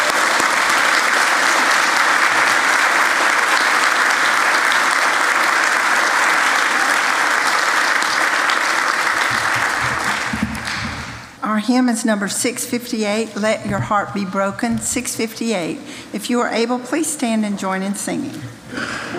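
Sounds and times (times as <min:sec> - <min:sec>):
congregation applause for graduates at a Baptist church service: 0:00.0 - 0:11.4
speech: 0:11.7 - 0:19.0.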